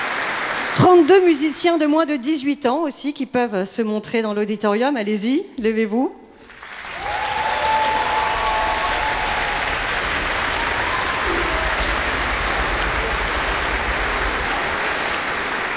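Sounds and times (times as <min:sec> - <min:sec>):
large audience applause in an indoor hall: 0:00.0 - 0:01.6, 0:06.4 - 0:15.7
speech: 0:00.8 - 0:06.2
whistles and cheers: 0:06.8 - 0:15.6.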